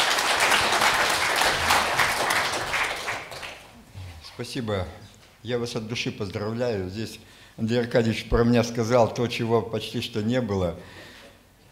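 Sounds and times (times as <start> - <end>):
audience applauding at the opening of the Livadia forum in Minsk: 0.0 - 3.7
speech: 4.4 - 11.1.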